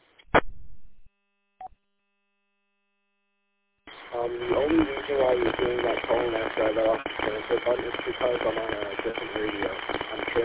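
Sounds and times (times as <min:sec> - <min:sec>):
radio roger beep or squelch tail: 0:04.0 - 0:10.4
speech: 0:04.1 - 0:10.4.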